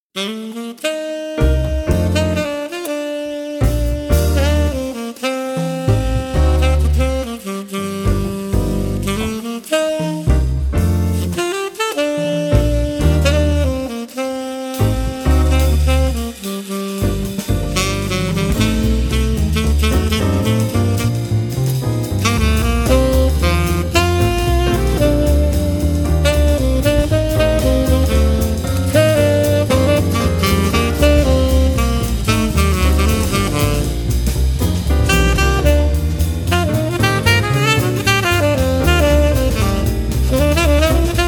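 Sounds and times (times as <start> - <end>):
saxophone: 0.1 - 41.2.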